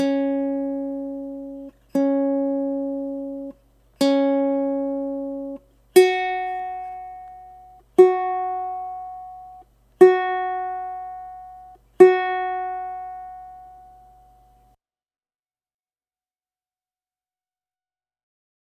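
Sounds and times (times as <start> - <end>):
ukulele tuning: 0.0 - 14.6.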